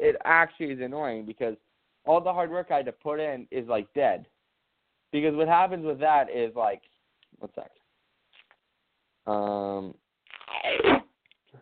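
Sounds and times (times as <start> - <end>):
speech: 0.2 - 4.3, 5.1 - 7.8, 9.3 - 11.0
duct tape pulled off the roll: 10.3 - 11.2.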